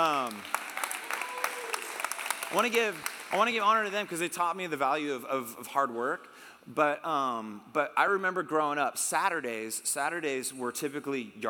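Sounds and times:
audience clapping: 0.0s - 4.2s
speech: 2.5s - 11.4s.

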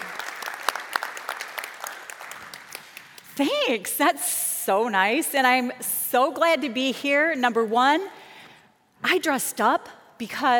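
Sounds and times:
audience applause welcoming a speaker: 0.0s - 3.2s
speech: 3.4s - 8.2s, 9.0s - 10.5s.

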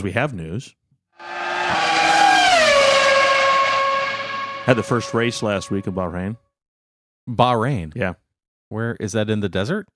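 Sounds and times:
speech: 0.0s - 2.0s, 4.7s - 6.4s, 7.2s - 9.9s
Formula One race car engine screaming past at high revs: 1.2s - 6.2s.

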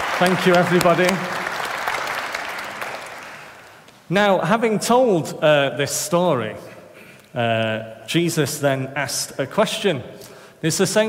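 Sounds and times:
audience applause: 0.0s - 3.8s
speech: 0.2s - 1.4s, 4.1s - 11.0s.

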